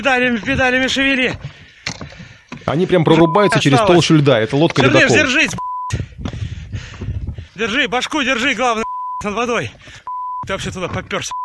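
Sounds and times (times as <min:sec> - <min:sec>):
speech: 0:00.0 - 0:06.1, 0:07.6 - 0:11.4
censorship bleep: 0:03.1 - 0:04.0, 0:04.9 - 0:06.0, 0:08.7 - 0:09.4, 0:10.0 - 0:11.4.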